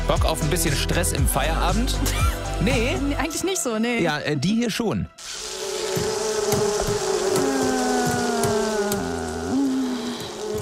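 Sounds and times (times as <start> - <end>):
speech: 0.1 - 5.4
wasps buzzing: 5.2 - 10.5.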